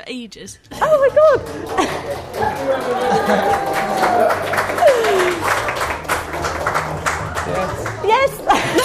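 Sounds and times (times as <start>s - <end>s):
speech: 0.1s - 5.7s
laughter: 0.8s - 5.7s, 8.2s - 8.8s
audience applause: 1.4s - 8.8s.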